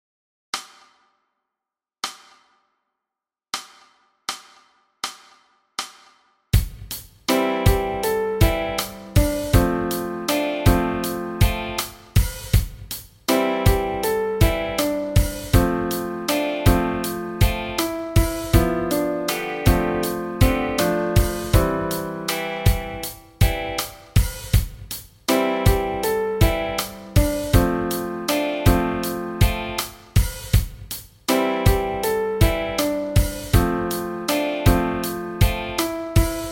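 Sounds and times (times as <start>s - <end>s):
music section without bass at 80 bpm: 6.6s - 36.4s.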